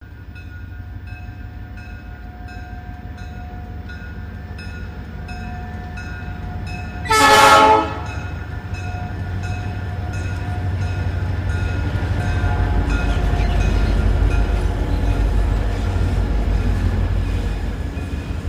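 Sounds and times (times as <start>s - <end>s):
steam train: 0.0s - 18.4s
train horns: 7.0s - 8.4s.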